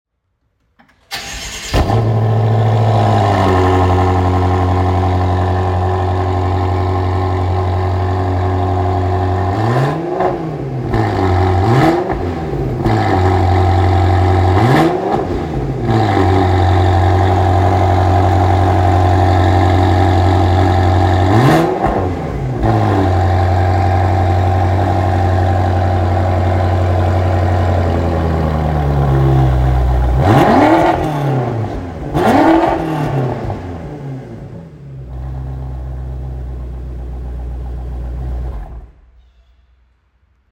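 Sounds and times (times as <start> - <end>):
BMW M6 engine: 0.8 - 39.2.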